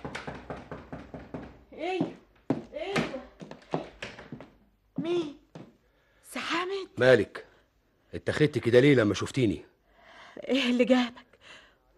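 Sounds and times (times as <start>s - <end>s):
knocking on a door: 0.0s - 4.4s
speech: 1.8s - 2.2s, 7.0s - 7.4s, 8.1s - 9.7s, 10.4s - 11.2s.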